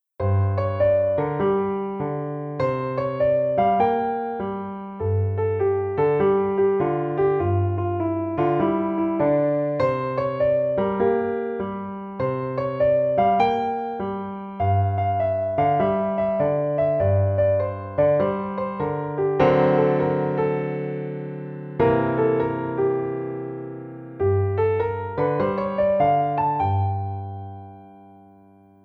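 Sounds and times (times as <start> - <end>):
solo piano: 0.0 - 28.8.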